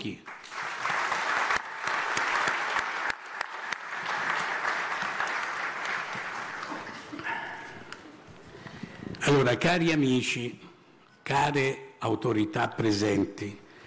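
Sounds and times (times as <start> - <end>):
speech: 0.0 - 0.3, 9.2 - 10.6, 11.3 - 13.6
audience applause: 0.3 - 8.0.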